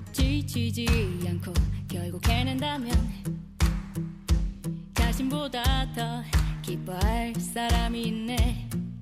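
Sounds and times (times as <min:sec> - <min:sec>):
cool teenage boy singing: 0:00.1 - 0:03.1, 0:05.0 - 0:08.7.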